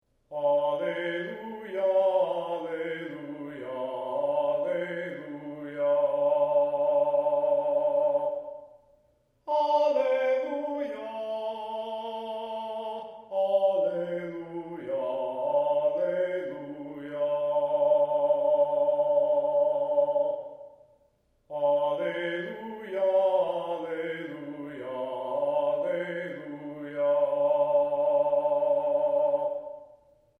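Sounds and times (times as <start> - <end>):
syllabic chant: 0.3 - 8.8, 9.4 - 20.9, 21.5 - 30.0.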